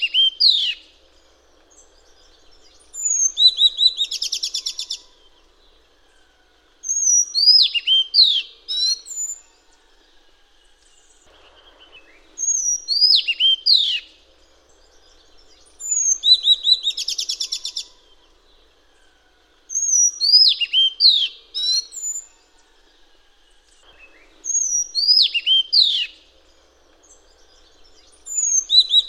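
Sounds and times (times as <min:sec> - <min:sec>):
Madagascar magpie-robin singing: 0:00.0 - 0:00.9, 0:02.7 - 0:05.1, 0:06.9 - 0:09.4, 0:11.9 - 0:14.1, 0:15.6 - 0:18.0, 0:19.7 - 0:22.3, 0:24.1 - 0:26.2, 0:27.2 - 0:29.0.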